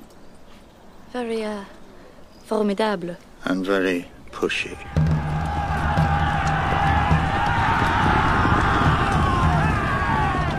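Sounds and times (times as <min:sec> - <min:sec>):
speech: 0:01.1 - 0:01.8, 0:02.5 - 0:05.0
cheering, clamoring crowd at a joust: 0:04.4 - 0:10.5
hoofbeats of armored knights' horses charging at a joust: 0:04.8 - 0:10.5.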